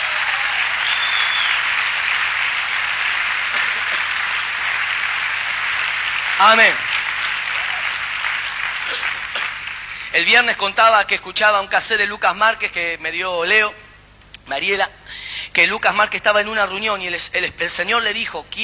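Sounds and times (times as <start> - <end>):
audience applauding loudly: 0.0 - 11.0
speech: 6.4 - 6.9, 10.1 - 13.8, 14.5 - 18.6.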